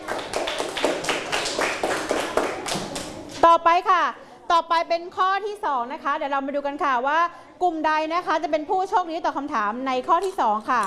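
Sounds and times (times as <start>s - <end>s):
classroom applause: 0.0s - 3.3s
speech: 3.6s - 10.8s.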